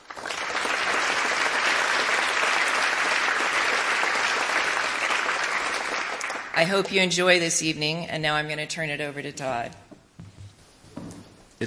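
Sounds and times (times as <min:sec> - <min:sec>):
crowd clapping: 0:00.0 - 0:07.1
speech: 0:06.6 - 0:09.8.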